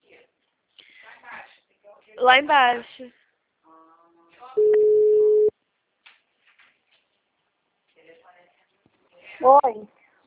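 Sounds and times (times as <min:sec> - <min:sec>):
speech: 0:02.2 - 0:03.2, 0:09.4 - 0:09.9
telephone busy tone after a dropped call: 0:04.6 - 0:05.5.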